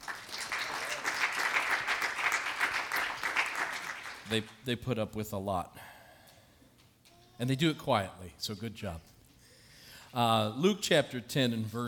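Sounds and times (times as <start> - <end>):
church congregation clapping for the sound room team: 0.0 - 4.6
speech: 4.3 - 5.8, 7.4 - 9.1, 10.1 - 11.8.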